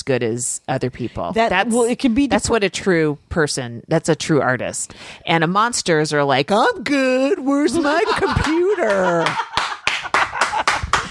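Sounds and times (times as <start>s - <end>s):
speech: 0.0s - 9.5s
laughter: 7.7s - 11.0s
hand clapping: 8.4s - 11.0s.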